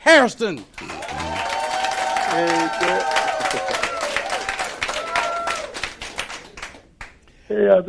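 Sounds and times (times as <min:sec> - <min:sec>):
people whooping and cheering: 0:00.8 - 0:06.6
live studio audience applause: 0:00.8 - 0:07.1.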